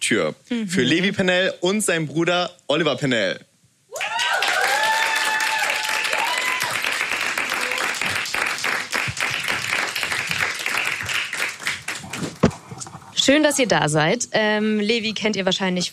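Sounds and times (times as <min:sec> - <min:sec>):
speech: 0:00.1 - 0:04.2, 0:13.3 - 0:15.9
audience applause: 0:04.0 - 0:12.6.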